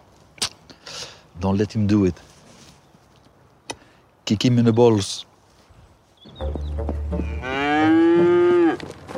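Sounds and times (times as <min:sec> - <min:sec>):
speech: 0:01.4 - 0:02.3, 0:04.3 - 0:05.3
cow mooing: 0:07.2 - 0:08.9.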